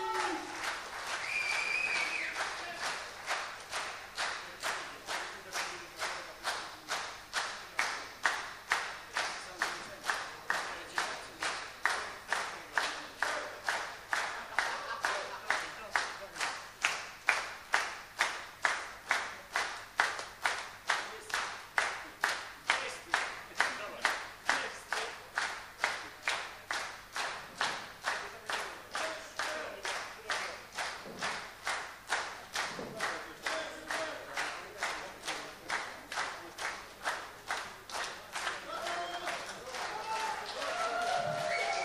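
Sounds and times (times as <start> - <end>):
audience clapping: 0.0 - 41.8
laughter: 14.2 - 15.9.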